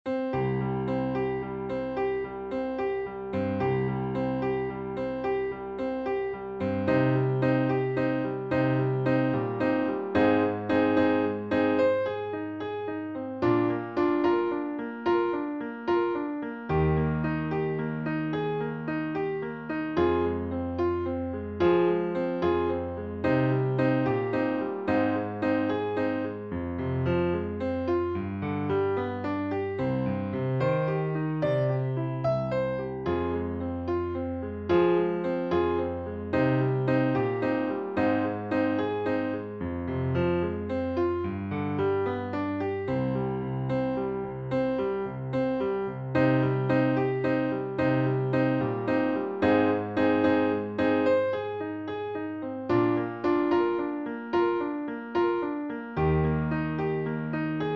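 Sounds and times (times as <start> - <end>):
piano backing track: 0.0 - 57.7.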